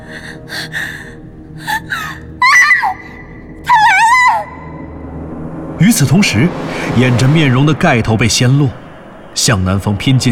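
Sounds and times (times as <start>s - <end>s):
woman's startled cry: 0.1s - 4.8s
speech: 0.2s - 2.3s, 5.8s - 8.8s, 9.4s - 10.3s.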